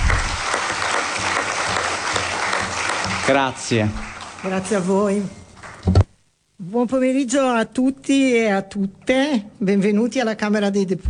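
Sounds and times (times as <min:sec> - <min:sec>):
crowd applause: 0:00.0 - 0:05.0
speech: 0:03.3 - 0:06.0, 0:06.7 - 0:11.0.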